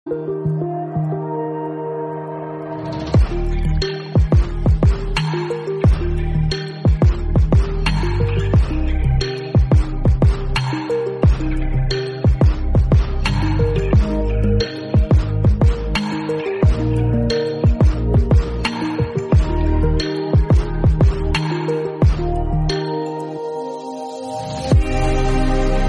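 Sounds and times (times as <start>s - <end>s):
instrumental music: 0.1s - 25.8s.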